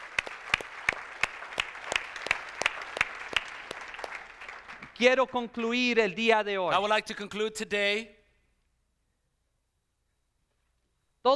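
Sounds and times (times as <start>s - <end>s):
audience loud hand clapping: 0.0s - 5.1s
speech: 5.0s - 8.2s.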